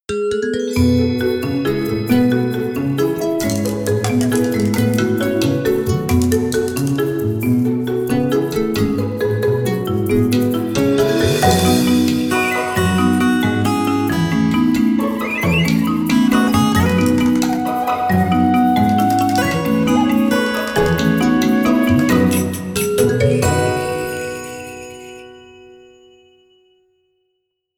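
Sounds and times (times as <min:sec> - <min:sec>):
kalimba: 0:00.1 - 0:26.0.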